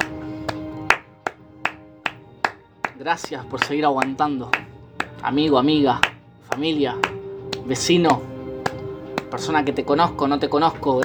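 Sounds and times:
applause: 0:00.0 - 0:05.2, 0:06.0 - 0:09.4
speech: 0:03.0 - 0:08.3, 0:09.3 - 0:11.0.

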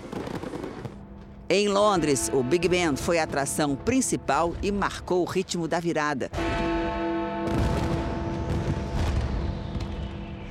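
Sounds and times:
fireworks exploding over Berlin: 0:00.0 - 0:01.4, 0:07.5 - 0:10.4
speech: 0:01.5 - 0:06.8.

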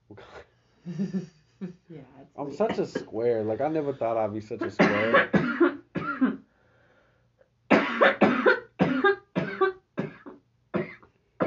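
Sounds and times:
speech: 0:00.9 - 0:05.6
harsh raspy coughing: 0:02.6 - 0:03.2, 0:04.6 - 0:06.5, 0:07.7 - 0:11.4.

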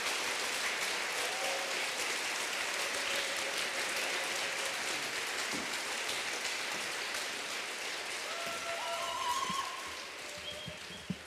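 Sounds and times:
crowd applause: 0:00.0 - 0:11.2
faint whistles: 0:10.4 - 0:11.2.

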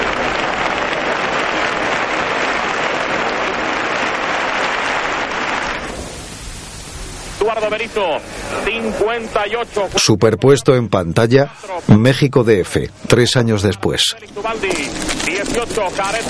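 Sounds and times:
bullring crowd roaring and applauding a bullfighter entering the arena: 0:00.0 - 0:06.0
speech: 0:07.6 - 0:16.2.

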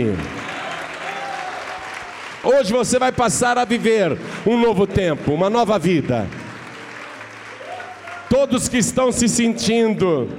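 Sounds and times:
speech: 0:00.0 - 0:00.4, 0:02.4 - 0:06.4, 0:08.4 - 0:10.3
audience applause: 0:00.0 - 0:04.7, 0:05.6 - 0:08.8.

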